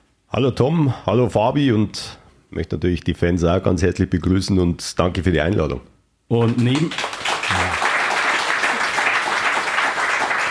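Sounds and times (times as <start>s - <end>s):
speech: 0.3s - 7.7s
audience applause: 6.4s - 10.4s.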